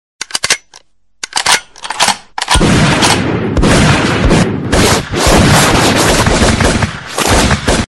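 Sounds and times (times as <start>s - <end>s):
gunshot: 2.5s - 7.8s.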